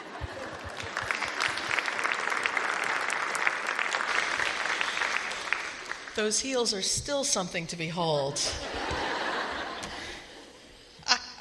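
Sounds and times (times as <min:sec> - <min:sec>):
laughter: 0:00.0 - 0:02.2, 0:08.3 - 0:10.6
audience applause greeting a speaker on stage: 0:00.0 - 0:06.2
speech: 0:06.2 - 0:09.0.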